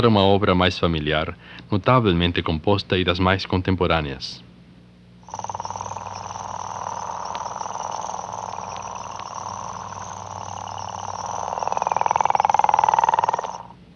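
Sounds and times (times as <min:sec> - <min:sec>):
speech: 0:00.0 - 0:04.4
chorus of African frogs croaking in a rapid trill: 0:05.2 - 0:13.8.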